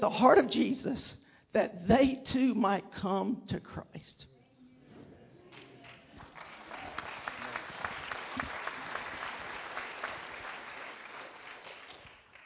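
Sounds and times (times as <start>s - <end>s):
speech: 0.0s - 4.3s
crowd applauding: 5.5s - 12.4s.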